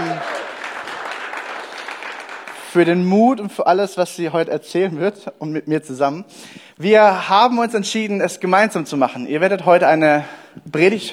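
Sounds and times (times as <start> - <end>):
audience applause: 0.0 - 2.9
speech: 2.8 - 11.1.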